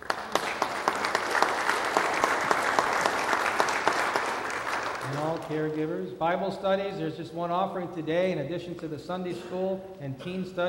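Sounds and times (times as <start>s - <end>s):
audience applause: 0.0s - 5.5s
speech: 5.4s - 10.6s.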